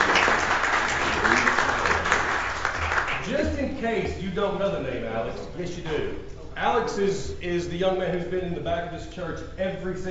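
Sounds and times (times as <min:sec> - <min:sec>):
audience applause: 0:00.0 - 0:03.3
speech: 0:03.8 - 0:10.1.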